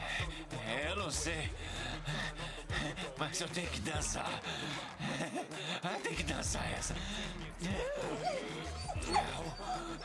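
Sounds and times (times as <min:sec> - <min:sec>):
laughter: 0:00.0 - 0:10.0
speech: 0:01.1 - 0:02.3, 0:03.2 - 0:10.0
dog whining and whimpering: 0:07.7 - 0:10.0.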